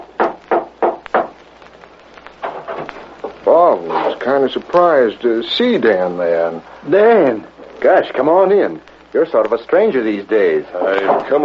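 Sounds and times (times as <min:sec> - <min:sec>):
knocking on a door: 0:00.0 - 0:01.4
speech: 0:03.5 - 0:11.4.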